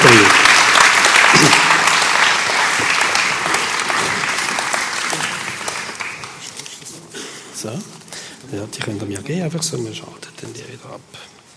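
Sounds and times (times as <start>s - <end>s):
audience applause: 0.0s - 7.3s
speech: 8.8s - 11.4s.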